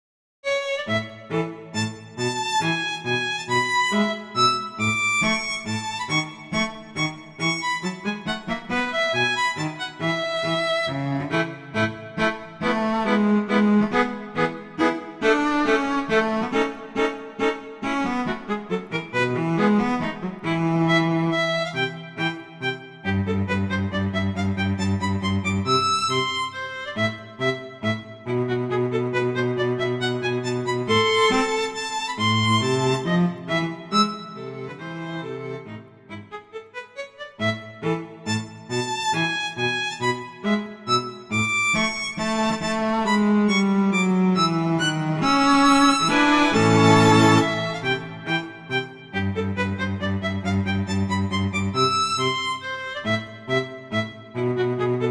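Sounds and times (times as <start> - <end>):
cello playing minuet allegro: 0.4 - 55.0
violin playing minuet allegro: 0.4 - 55.0.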